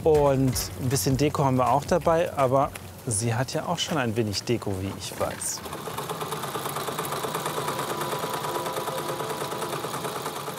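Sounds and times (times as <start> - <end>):
speech: 0.0 - 5.8
sewing machine stitching lavender-filled cushions: 5.1 - 10.5.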